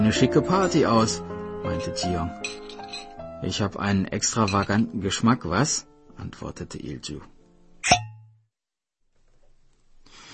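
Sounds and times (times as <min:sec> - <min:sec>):
speech: 0:00.1 - 0:02.6, 0:03.4 - 0:08.1
cork popping out of a bottle of Chilean Montes Alpha wine: 0:07.8 - 0:08.4.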